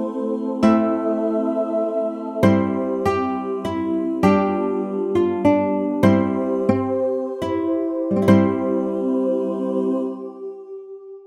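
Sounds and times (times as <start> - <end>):
ukulele playing a carol: 0.0 - 9.3.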